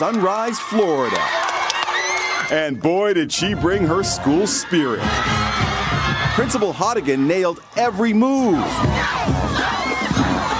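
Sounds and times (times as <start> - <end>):
speech: 0.0 - 1.5, 2.5 - 9.8
homecoming game crowd cheering wildly: 0.0 - 10.5.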